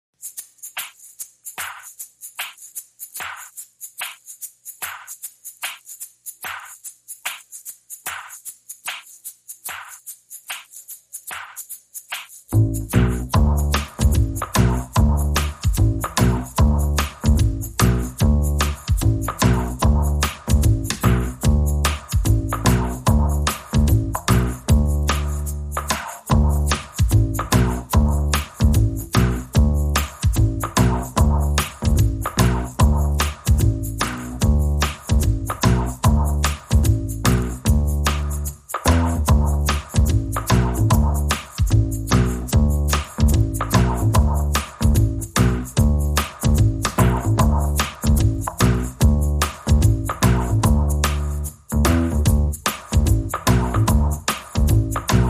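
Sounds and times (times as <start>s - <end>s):
drums: 1.6s - 4.2s, 4.8s - 55.2s
bass: 12.5s - 55.2s.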